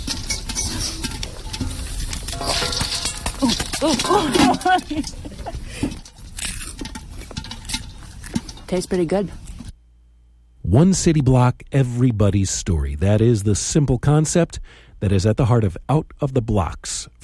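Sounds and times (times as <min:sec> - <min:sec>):
popcorn popping in a lidded pot over an open fire: 0:00.0 - 0:09.7
speech: 0:03.4 - 0:05.2, 0:08.7 - 0:09.4, 0:10.7 - 0:17.2.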